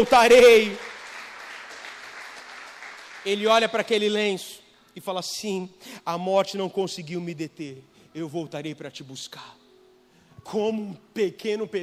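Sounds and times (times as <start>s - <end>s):
speech: 0.0s - 0.9s, 3.2s - 9.6s, 10.4s - 11.8s
audience applauding: 0.0s - 4.0s.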